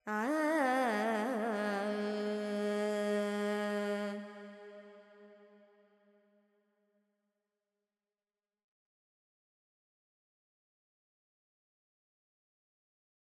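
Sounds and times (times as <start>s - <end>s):
Carnatic female alap in Purvi Kalyani: 0.0s - 5.0s.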